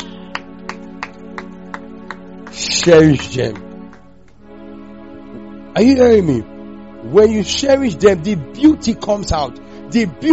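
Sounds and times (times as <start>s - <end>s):
audience clapping: 0.0s - 4.6s
speech: 2.6s - 3.7s, 5.8s - 10.3s.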